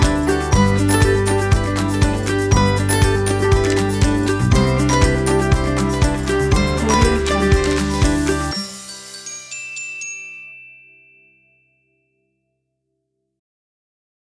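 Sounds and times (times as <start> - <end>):
family acoustic music: 0.0 - 9.6.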